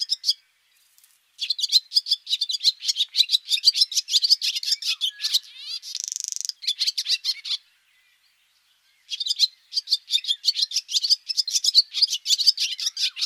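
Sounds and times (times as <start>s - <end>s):
barn swallow twittering: 1.4s - 7.6s, 9.0s - 13.2s.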